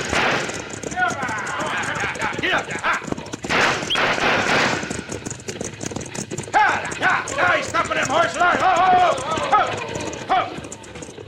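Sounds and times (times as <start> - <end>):
gunfire at a stagecoach driver: 0.0 - 2.7, 3.4 - 5.3
steady rumble: 0.0 - 11.2
faint voices: 0.8 - 3.5, 6.4 - 11.2.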